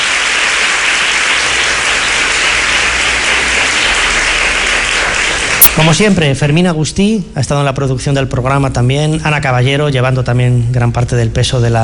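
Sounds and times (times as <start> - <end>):
audience applause: 0.0 - 6.0
speech: 5.8 - 11.8.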